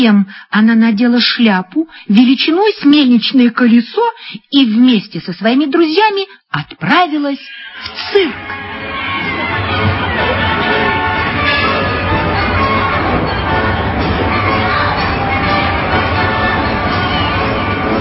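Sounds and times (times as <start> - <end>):
speech: 0.0 - 10.2
children shouting and cheering: 8.1 - 17.9
crowd murmuring at a circus entrance: 8.3 - 17.9.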